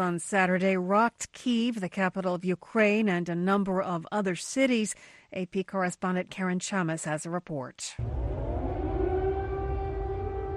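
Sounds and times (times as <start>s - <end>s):
speech: 0.0s - 8.4s
air raid sirens in Kyiv during Russian airstrikes: 8.0s - 10.5s.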